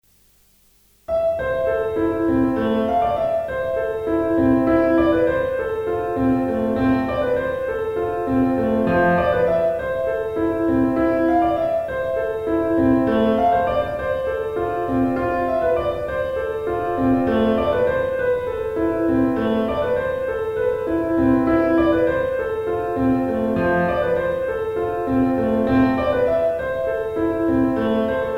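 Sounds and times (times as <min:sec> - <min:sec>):
pop piano: 0:01.1 - 0:28.3.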